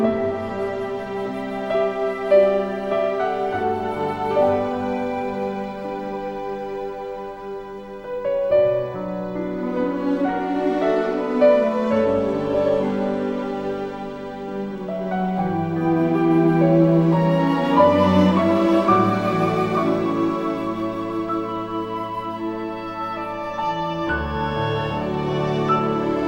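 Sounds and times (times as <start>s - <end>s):
lyrical piano: 0.0s - 26.2s.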